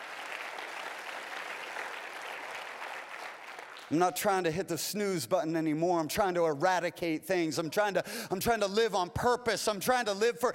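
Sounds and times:
audience hand clapping: 0:00.0 - 0:04.2
speech: 0:03.9 - 0:10.5.

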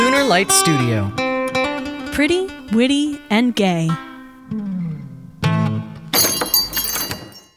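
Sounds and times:
speech: 0:00.2 - 0:01.2, 0:02.2 - 0:04.7
shop door bell chimes: 0:06.1 - 0:07.5
metallic jingling: 0:06.2 - 0:07.5.

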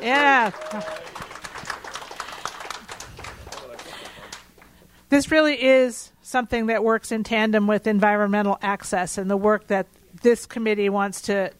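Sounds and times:
speech: 0:00.0 - 0:01.2, 0:05.1 - 0:11.5
audience applause: 0:00.0 - 0:04.7.

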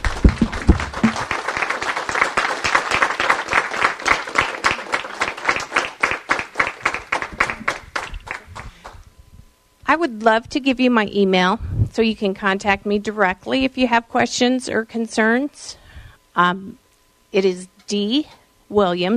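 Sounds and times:
audience applause for the guests after a talk about voting rights: 0:00.0 - 0:09.0
speech: 0:09.9 - 0:15.8, 0:16.4 - 0:19.1.

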